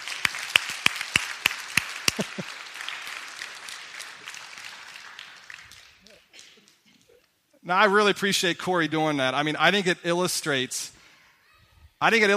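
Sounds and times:
audience applause: 0:00.0 - 0:06.9
laughter: 0:02.0 - 0:02.6
speech: 0:07.7 - 0:11.0, 0:12.0 - 0:12.3.

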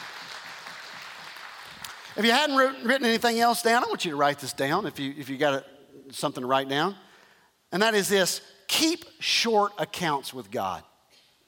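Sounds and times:
audience hand clapping: 0:00.0 - 0:02.3
speech: 0:02.2 - 0:07.1, 0:07.7 - 0:10.9.

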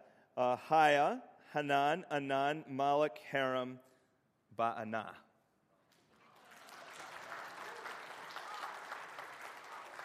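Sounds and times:
speech: 0:00.4 - 0:03.9, 0:04.6 - 0:05.2
audience clapping: 0:05.9 - 0:10.0.

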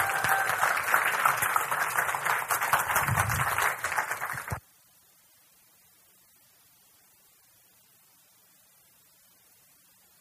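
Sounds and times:
crowd applauding: 0:00.0 - 0:04.6.

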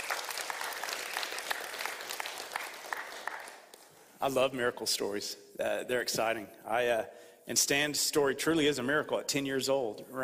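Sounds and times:
audience clapping: 0:00.0 - 0:03.9
speech: 0:04.2 - 0:10.2.

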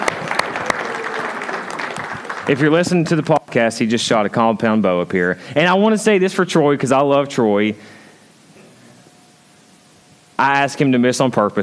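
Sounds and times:
audience applause: 0:00.0 - 0:03.2
speech: 0:02.5 - 0:08.0, 0:10.4 - 0:11.6.

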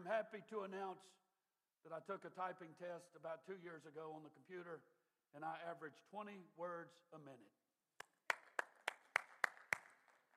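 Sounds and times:
speech: 0:00.0 - 0:01.2, 0:01.8 - 0:07.6
audience applause: 0:08.3 - 0:10.3.

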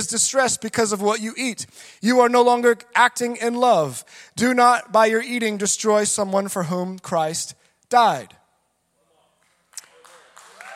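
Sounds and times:
speech: 0:00.0 - 0:08.4
audience applauding: 0:09.4 - 0:10.7.

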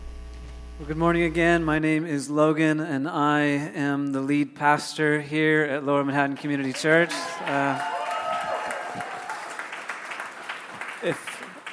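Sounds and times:
speech: 0:00.8 - 0:08.0, 0:11.0 - 0:11.3
crowd cheering and clapping in a large room: 0:06.6 - 0:11.7
scattered whoops: 0:07.0 - 0:09.7.

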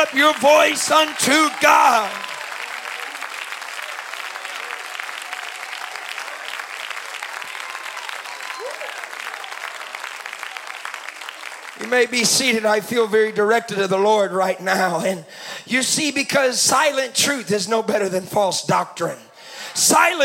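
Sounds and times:
speech: 0:00.0 - 0:02.3, 0:11.9 - 0:20.2
audience applause: 0:00.0 - 0:12.6.

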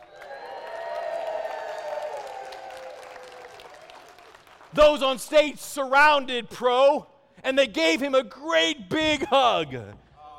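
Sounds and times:
crowd whooping: 0:00.0 - 0:04.0
crowd clapping: 0:00.0 - 0:05.4
speech: 0:04.7 - 0:10.0.

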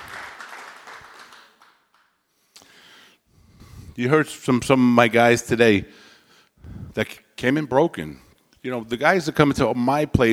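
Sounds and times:
audience hand clap: 0:00.0 - 0:02.1
speech: 0:04.0 - 0:06.0, 0:07.0 - 0:10.3.

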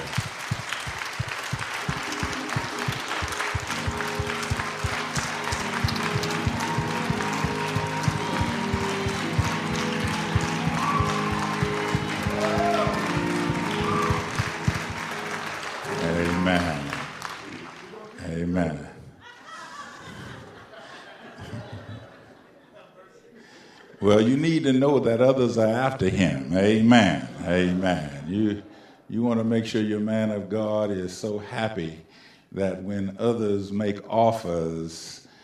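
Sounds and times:
congregation hand clap for the pastor: 0:00.0 - 0:18.3
laughter: 0:19.2 - 0:24.1
speech: 0:24.1 - 0:35.2.

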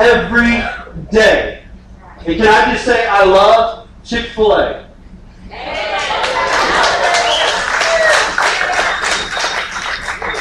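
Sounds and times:
speech: 0:00.0 - 0:01.5, 0:02.2 - 0:04.8
audience clapping: 0:05.8 - 0:10.3.

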